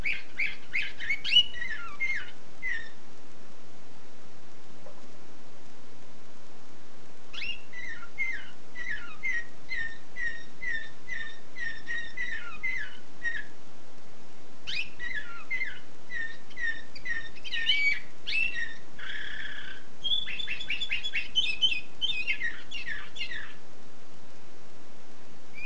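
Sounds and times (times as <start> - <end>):
canary singing: 0.0 - 3.1, 7.3 - 13.6, 14.6 - 23.7.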